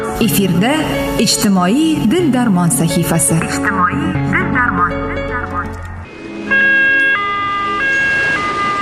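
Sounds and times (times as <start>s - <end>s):
speech: 0.2s - 5.9s
ambulance siren two-tone wail: 6.1s - 8.8s.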